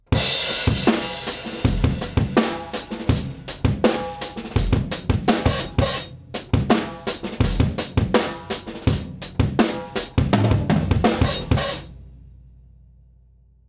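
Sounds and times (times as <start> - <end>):
drums: 0.0 - 12.8.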